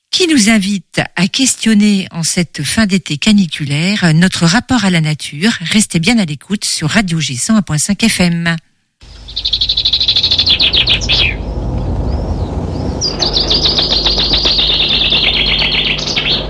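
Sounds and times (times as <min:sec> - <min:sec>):
speech: 0:00.2 - 0:08.7, 0:09.3 - 0:09.9
common whitethroat song: 0:09.0 - 0:16.4
low rumble: 0:09.0 - 0:16.4.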